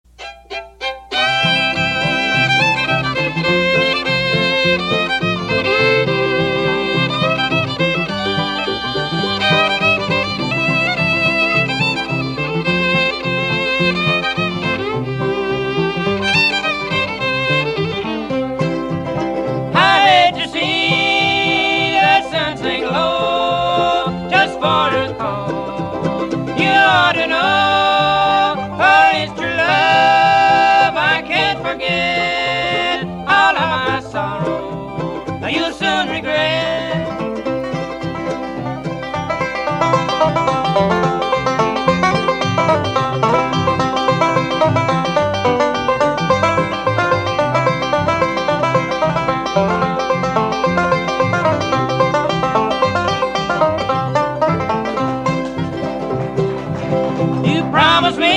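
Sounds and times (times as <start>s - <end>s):
bluegrass music: 0.1s - 58.3s.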